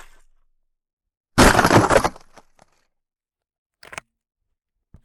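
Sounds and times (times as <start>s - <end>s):
large ice breaking: 1.4s - 2.7s.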